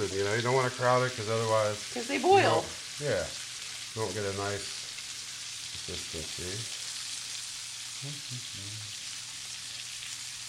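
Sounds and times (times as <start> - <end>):
bacon frying in a pan: 0.0 - 10.4
speech: 0.2 - 4.8, 5.9 - 6.8, 8.0 - 9.0.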